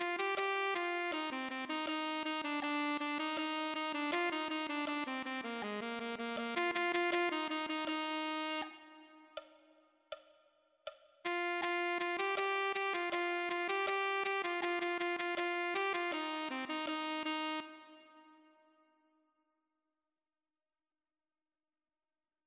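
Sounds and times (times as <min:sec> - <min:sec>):
alto saxophone: 0:00.0 - 0:09.4, 0:11.3 - 0:18.7.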